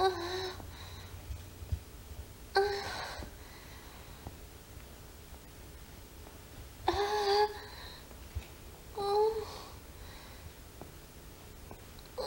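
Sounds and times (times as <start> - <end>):
woman moaning while masturbating with a vibrator: 0.0 - 0.6, 2.6 - 3.3, 6.9 - 7.7, 9.0 - 9.8.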